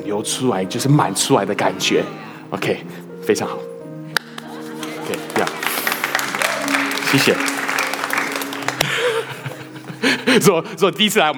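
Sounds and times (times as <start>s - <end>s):
speech: 0.0s - 3.7s, 7.1s - 7.5s, 10.4s - 11.3s
laughter: 0.0s - 11.2s
crowd clapping: 4.2s - 10.4s.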